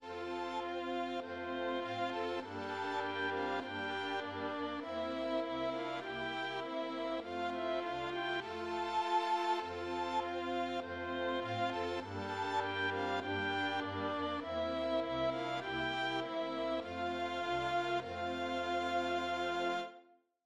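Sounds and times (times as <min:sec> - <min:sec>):
string instruments: 0:00.0 - 0:20.0.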